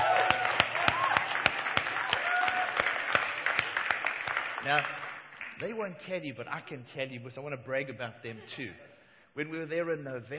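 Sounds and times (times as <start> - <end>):
crowd noise: 0.0 - 2.9
audience clapping: 0.0 - 5.8
speech: 4.6 - 5.0, 5.6 - 10.3.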